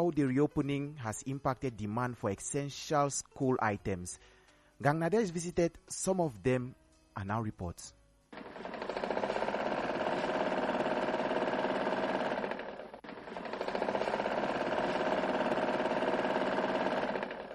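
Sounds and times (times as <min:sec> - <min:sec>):
speech: 0:00.0 - 0:08.7
sewing machine running: 0:08.4 - 0:17.5.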